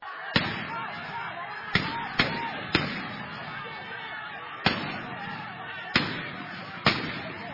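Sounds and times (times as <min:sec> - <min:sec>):
police gunfire dispersing villagers blockading a road: 0:00.4 - 0:07.5.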